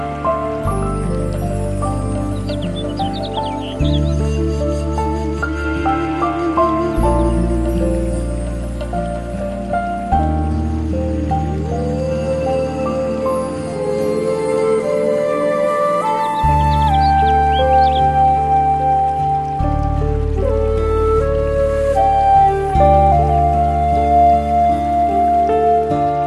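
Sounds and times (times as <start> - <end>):
Japanese music: 0.0 - 26.2
stream flowing: 0.0 - 26.2
birds: 0.5 - 5.6, 10.4 - 18.6.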